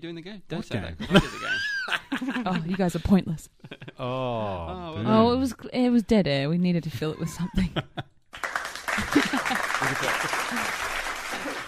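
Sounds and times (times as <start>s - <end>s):
speech: 0.0s - 8.1s, 9.8s - 11.6s
laughter: 1.0s - 5.0s, 7.2s - 8.2s, 8.9s - 11.6s
small group applause: 8.3s - 11.6s.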